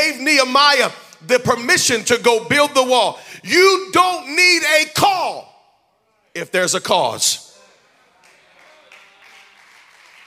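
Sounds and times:
speech: 0:00.1 - 0:05.5, 0:06.4 - 0:07.5
scattered claps: 0:08.2 - 0:10.2.

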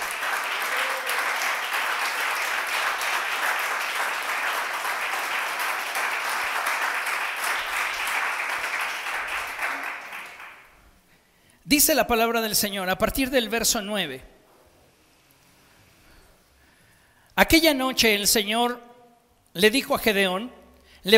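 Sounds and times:
audience applause: 0:00.0 - 0:10.8
speech: 0:11.7 - 0:14.3, 0:17.4 - 0:18.9, 0:19.6 - 0:21.1.

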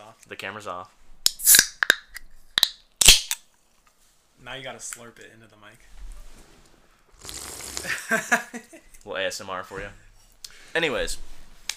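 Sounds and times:
speech: 0:00.2 - 0:01.6, 0:04.4 - 0:06.0, 0:07.2 - 0:10.0, 0:10.8 - 0:11.3
Canada Dry soda can being opened: 0:01.2 - 0:03.4.

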